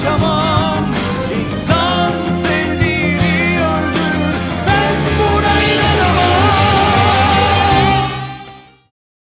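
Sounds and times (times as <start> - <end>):
vocals: 0.0 - 8.9.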